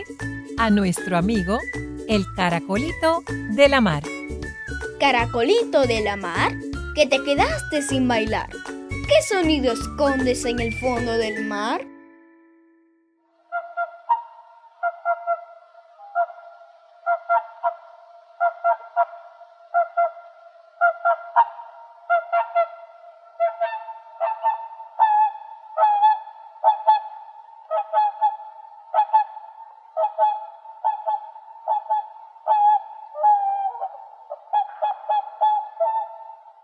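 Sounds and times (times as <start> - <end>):
speech: 0.0 - 4.2, 5.0 - 11.9
swan calling: 13.5 - 36.6.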